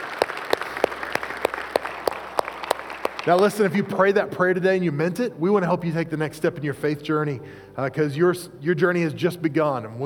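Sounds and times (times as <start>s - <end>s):
audience applause: 0.0s - 3.9s
speech: 3.2s - 10.0s.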